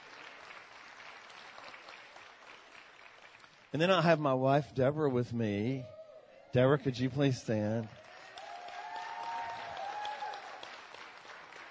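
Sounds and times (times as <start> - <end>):
church congregation applauding: 0.0 - 4.3, 6.6 - 11.6
speech: 3.7 - 8.0.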